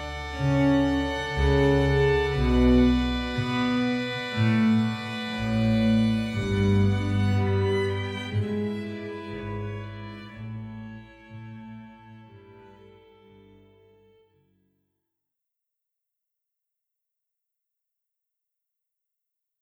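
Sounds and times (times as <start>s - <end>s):
baroque air and gavotte: 0.0s - 13.5s.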